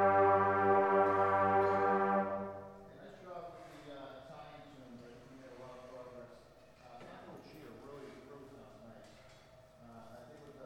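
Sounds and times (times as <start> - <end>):
brass music: 0.0 - 3.0.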